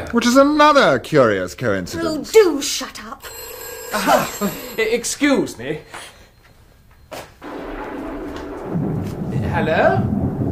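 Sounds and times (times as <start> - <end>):
speech: 0.1 - 6.1, 9.5 - 10.2
thunder crack and rumble: 7.4 - 10.4.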